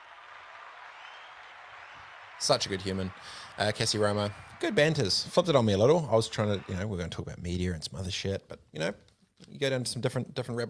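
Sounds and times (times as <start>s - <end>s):
applause: 0.0s - 7.1s
speech: 2.4s - 10.6s.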